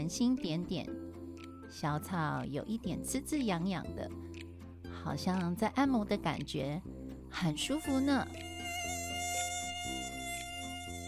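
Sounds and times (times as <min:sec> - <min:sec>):
speech: 0:00.0 - 0:01.1, 0:01.7 - 0:08.5
mosquitoes buzzing on grassland: 0:07.9 - 0:11.0.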